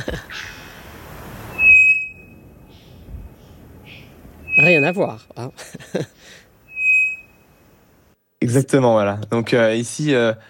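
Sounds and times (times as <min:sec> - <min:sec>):
speech: 0:00.1 - 0:00.3, 0:04.6 - 0:06.4, 0:08.4 - 0:10.4
bouvreuil pivoine low-modulated whistling: 0:01.5 - 0:05.2, 0:06.7 - 0:07.4.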